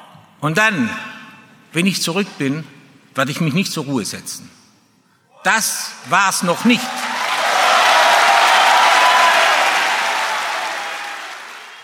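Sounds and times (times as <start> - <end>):
speech: 0.4 - 1.1, 1.7 - 4.6, 5.4 - 7.0
standing ovation applause from FC Bayern fans: 6.0 - 11.8.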